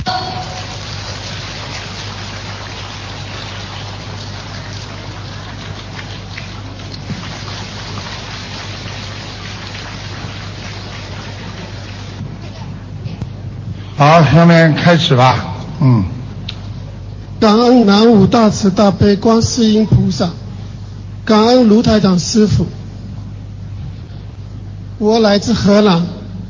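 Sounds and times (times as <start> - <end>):
sustained applause from a large audience: 0.0 - 12.0
speech: 14.0 - 16.1, 17.4 - 20.4, 21.3 - 22.8, 25.0 - 26.2.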